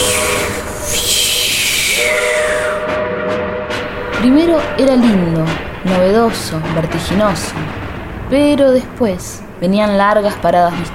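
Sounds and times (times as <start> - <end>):
coal-fired steam train long whistle: 0.0 - 5.4
hissing steam from a coal-fired steam train: 0.0 - 7.9
steam train wheels clattering on the tracks: 0.0 - 10.9
speech: 4.2 - 10.9.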